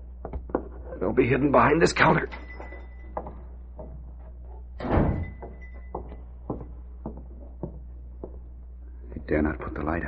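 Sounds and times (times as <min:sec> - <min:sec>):
speech: 0:01.0 - 0:02.4, 0:09.4 - 0:10.0
front door opening with rattle: 0:04.8 - 0:05.9.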